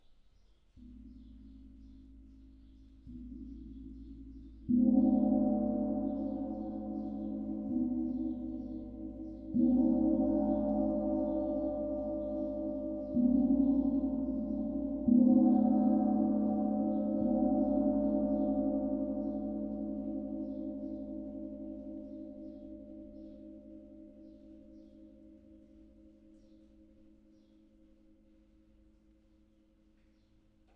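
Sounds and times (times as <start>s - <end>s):
gong: 0.8s - 27.5s.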